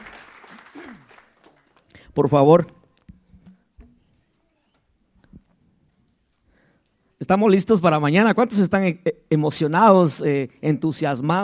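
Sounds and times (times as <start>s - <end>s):
audience applauding: 0.0s - 2.0s
speech: 2.2s - 2.8s, 7.3s - 11.4s.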